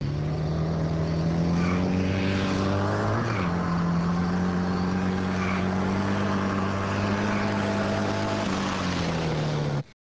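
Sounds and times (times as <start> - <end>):
motorcycle: 0.0 - 10.0.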